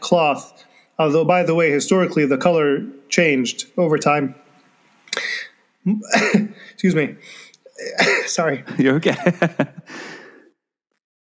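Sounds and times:
speech: 0:00.1 - 0:04.4, 0:05.8 - 0:10.2
cough: 0:06.0 - 0:06.6, 0:07.8 - 0:08.6
laughter: 0:08.4 - 0:10.1.

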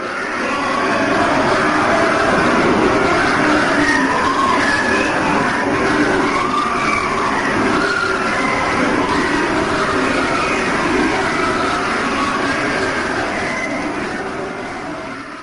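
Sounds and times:
purported screams recorded deep in a borehole: 0:00.0 - 0:15.4.

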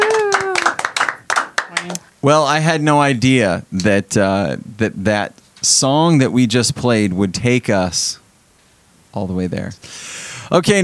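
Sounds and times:
applause, hands clapping: 0:00.0 - 0:02.0
speech: 0:01.8 - 0:08.2, 0:09.2 - 0:10.8.

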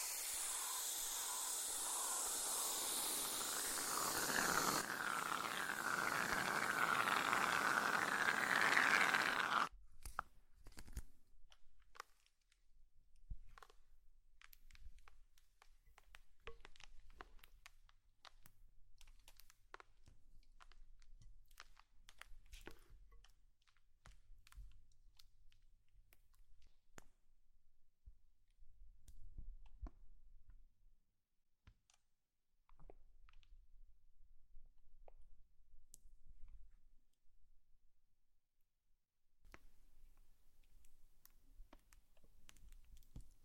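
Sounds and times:
slime sounds: 0:00.0 - 0:09.7.

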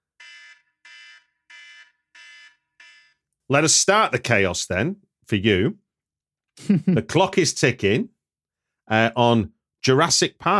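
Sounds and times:
klaxon alarm: 0:00.0 - 0:03.3
speech: 0:03.5 - 0:05.8, 0:06.6 - 0:08.1, 0:08.9 - 0:10.5.

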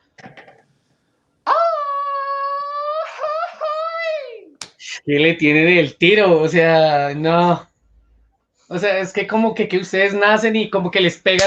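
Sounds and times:
person screaming: 0:01.5 - 0:04.5
speech: 0:05.0 - 0:07.7, 0:08.7 - 0:11.4.

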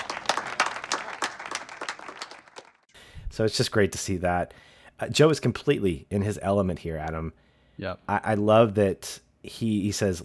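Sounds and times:
audience applauding: 0:00.0 - 0:02.9
speech: 0:03.3 - 0:10.2.

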